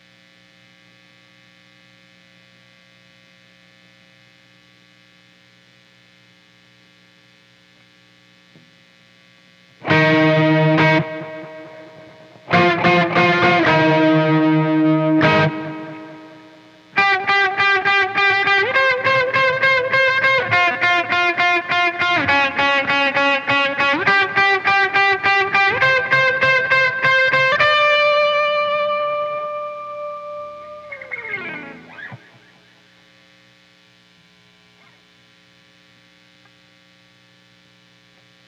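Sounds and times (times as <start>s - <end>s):
guitar: 9.7s - 33.4s.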